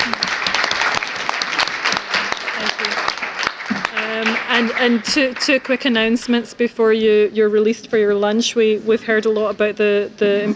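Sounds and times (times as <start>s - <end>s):
room full of people clapping: 0.0s - 6.4s
speech: 4.5s - 10.5s.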